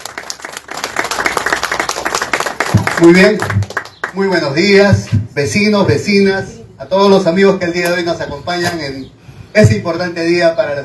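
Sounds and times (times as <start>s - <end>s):
audience at an Asociación Villa Sureña event in Islay applauding the district mayor: 0.0s - 4.3s
speech: 3.0s - 10.8s.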